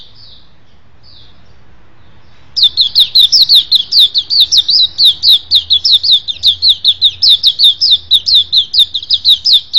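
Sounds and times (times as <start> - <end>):
white-eye twittering: 2.6 - 9.7.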